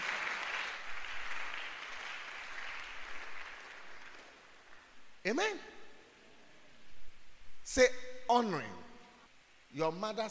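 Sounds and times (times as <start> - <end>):
people clapping: 0.0 - 5.0
speech: 5.2 - 5.7, 7.7 - 8.8, 9.7 - 10.2.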